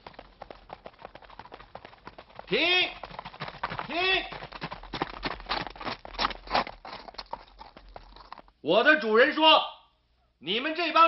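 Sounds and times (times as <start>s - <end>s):
horse hoofbeats: 0.0s - 8.6s
speech: 2.5s - 3.0s, 8.6s - 9.7s, 10.4s - 11.0s.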